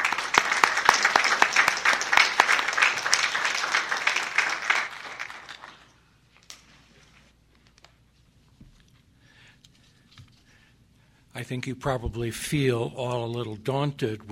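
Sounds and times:
lecture audience applause welcoming a professor: 0.0 - 6.0
speech: 11.4 - 14.3.

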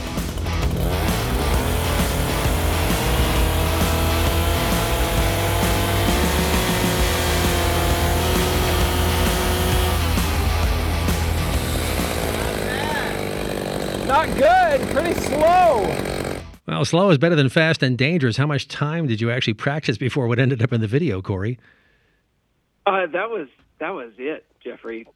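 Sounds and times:
chainsaw with debarking planer attachment running: 0.0 - 16.6
speech: 14.3 - 16.1, 16.7 - 21.8, 22.8 - 25.1.

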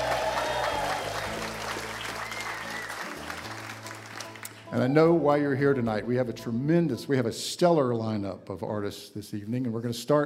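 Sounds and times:
audience applause at a live evening show at the Museum of Commerce: 0.0 - 5.2
speech: 4.7 - 10.2.

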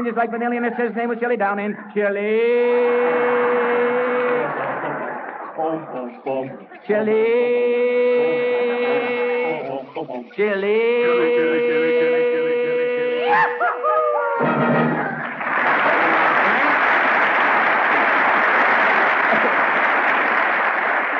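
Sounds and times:
speech: 0.0 - 5.0, 5.6 - 9.2, 10.0 - 12.2
laughter: 2.8 - 20.8
audience applause: 3.0 - 6.1, 13.4 - 21.1.

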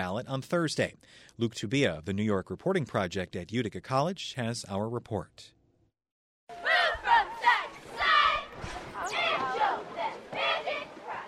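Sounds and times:
speech: 0.0 - 5.6
high school football crowd cheering and chanting: 6.5 - 11.2.

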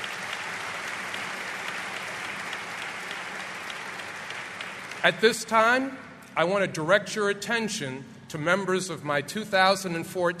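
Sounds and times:
audience applause: 0.0 - 5.3
speech: 5.0 - 10.3.

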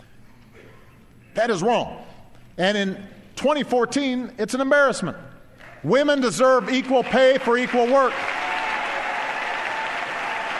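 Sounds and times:
speech: 1.4 - 8.3
audience applause for a line in a presidential speech on equal pay: 6.7 - 10.5.

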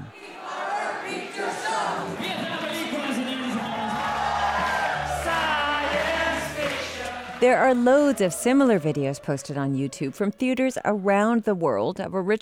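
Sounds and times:
audience singing along at a film screening in Barcelona, Spain: 0.0 - 9.9
speech: 7.4 - 12.4.

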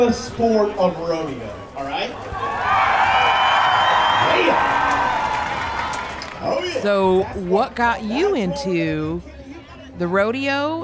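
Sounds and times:
speech: 0.0 - 2.6, 6.4 - 9.3, 10.0 - 10.8
rodeo crowd roaring: 0.6 - 7.0
rodeo crowd whoops and hollered yells: 2.4 - 6.2
rodeo crowd clapping: 2.7 - 6.6.

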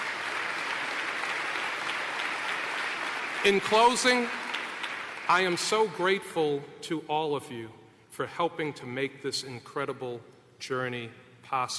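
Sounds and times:
large crowd applauding: 0.0 - 6.2
speech: 3.4 - 4.4, 5.3 - 11.7.

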